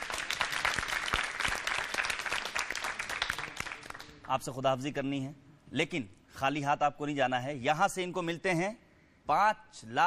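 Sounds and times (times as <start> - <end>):
audience applause: 0.0 - 4.1
speech: 4.3 - 10.0.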